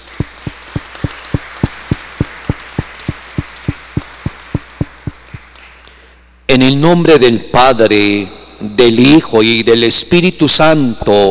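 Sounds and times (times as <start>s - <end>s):
applause: 0.0s - 5.4s
speech: 6.5s - 11.2s.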